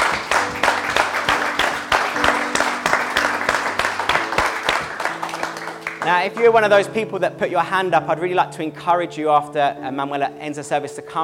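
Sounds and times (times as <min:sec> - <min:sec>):
audience round of applause: 0:00.0 - 0:06.6
speech: 0:06.1 - 0:11.2.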